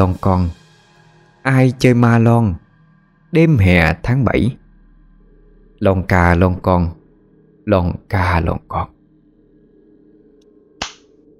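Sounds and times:
speech: 0:00.0 - 0:00.6, 0:01.4 - 0:02.6, 0:03.3 - 0:04.6, 0:05.8 - 0:07.0, 0:07.7 - 0:09.0
hard slap to the face: 0:10.8 - 0:11.1.

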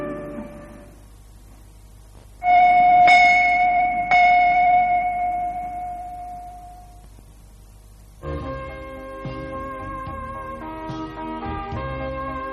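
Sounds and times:
temple bell ringing: 0:02.4 - 0:07.0.

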